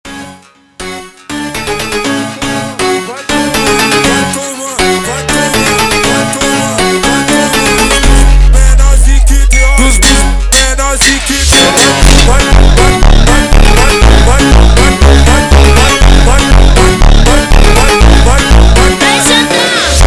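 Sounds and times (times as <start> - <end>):
slowed montagem music: 0.1 - 20.0.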